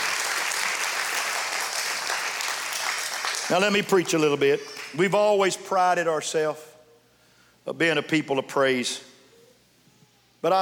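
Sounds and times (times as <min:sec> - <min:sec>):
audience applause: 0:00.0 - 0:04.0
speech: 0:03.5 - 0:06.7, 0:07.6 - 0:09.1, 0:10.4 - 0:10.6.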